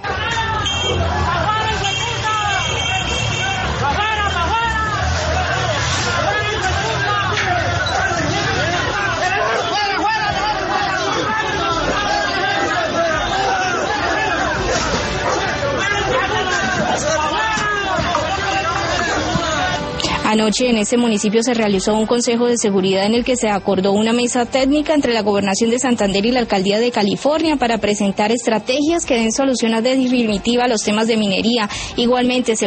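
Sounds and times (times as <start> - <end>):
agitated crowd scuffling with police outside the town hall in California, Santander, Colombia: 0.0 - 22.2
speech: 20.3 - 32.6.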